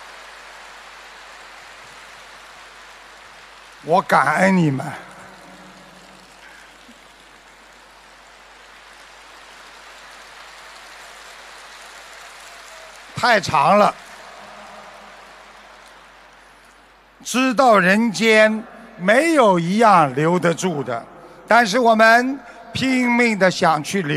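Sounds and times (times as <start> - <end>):
audience applause: 0.0 - 17.2
speech: 3.8 - 5.1, 13.2 - 14.0, 17.2 - 24.1.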